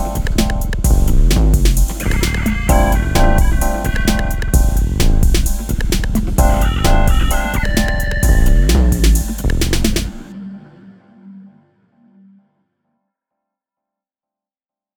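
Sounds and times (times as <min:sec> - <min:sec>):
chillwave music with 808 drum machine: 0:00.0 - 0:10.7.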